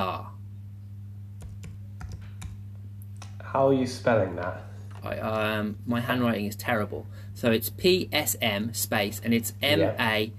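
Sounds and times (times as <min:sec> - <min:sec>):
computer keyboard keystrokes: 0:01.4 - 0:02.6
speech: 0:03.5 - 0:10.3.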